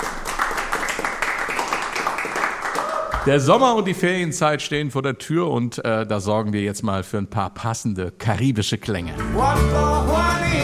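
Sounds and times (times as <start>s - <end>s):
live studio audience applauding: 0.0s - 3.6s
speech: 3.2s - 10.6s.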